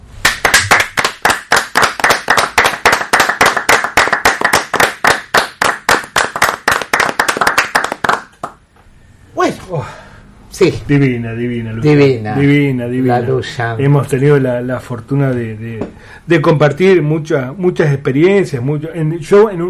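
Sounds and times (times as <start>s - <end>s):
audience applause: 0.2s - 8.6s
speech: 10.6s - 19.6s.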